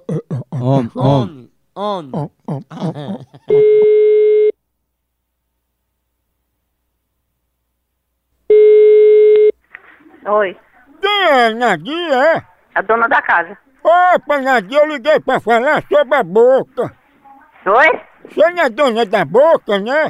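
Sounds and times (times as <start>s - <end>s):
laughter: 0.0s - 3.6s, 13.9s - 16.8s
speech: 0.6s - 3.6s, 10.3s - 10.6s, 11.4s - 17.0s, 17.6s - 20.0s
telephone ringback tone: 3.5s - 4.5s, 8.5s - 9.5s.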